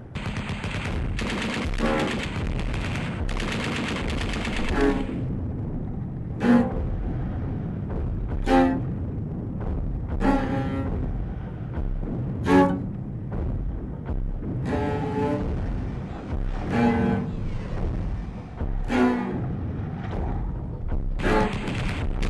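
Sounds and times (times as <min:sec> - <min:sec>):
gunfire crackling in bursts: 0:00.0 - 0:05.2, 0:21.2 - 0:22.2
heavy constant low rumble: 0:00.0 - 0:22.2.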